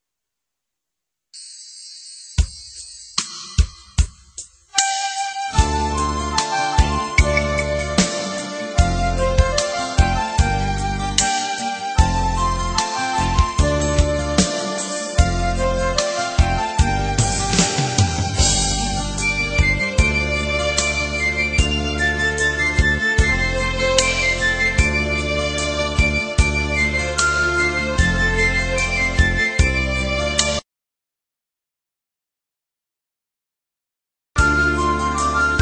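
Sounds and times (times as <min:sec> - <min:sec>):
Vietnamese instrumental folk music beat: 0:04.8 - 0:30.6, 0:34.4 - 0:35.5.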